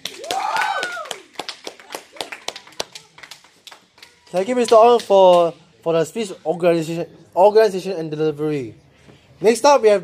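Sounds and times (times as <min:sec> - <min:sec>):
group applauding: 0:00.0 - 0:05.5
rising vocal whoop: 0:00.2 - 0:01.2
speech: 0:04.3 - 0:08.8, 0:09.4 - 0:10.0.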